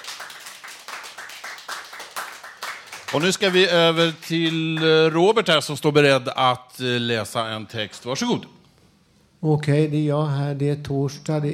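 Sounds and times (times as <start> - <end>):
applause: 0.0 - 5.5
speech: 3.1 - 8.6, 9.4 - 11.5.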